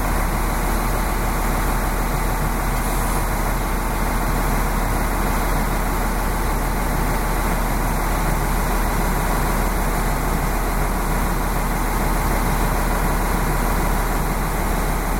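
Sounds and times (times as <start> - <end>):
Lint 41 diesel multiple unit train idling at Holbæk Station: 0.0 - 15.1.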